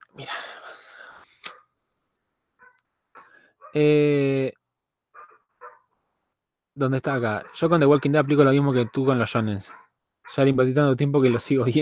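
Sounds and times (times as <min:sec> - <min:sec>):
dog barking: 0:02.6 - 0:03.8, 0:05.2 - 0:05.9, 0:07.4 - 0:10.4, 0:11.2 - 0:11.8
speech: 0:03.7 - 0:04.6, 0:06.8 - 0:11.8.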